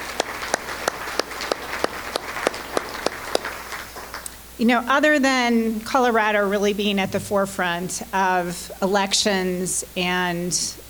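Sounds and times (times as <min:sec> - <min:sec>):
clapping: 0:00.0 - 0:04.4
faint hiss: 0:00.0 - 0:10.8
speech: 0:04.6 - 0:10.8.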